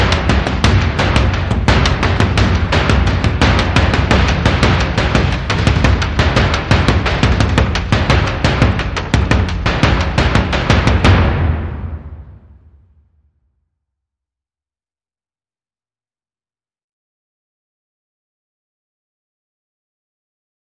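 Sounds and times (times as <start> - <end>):
mid drums: 0.0 - 12.9.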